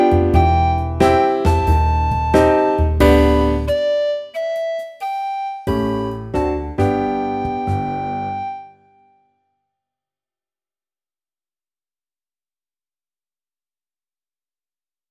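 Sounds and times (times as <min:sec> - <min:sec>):
practice piece played on a recorder: 0:00.0 - 0:09.1.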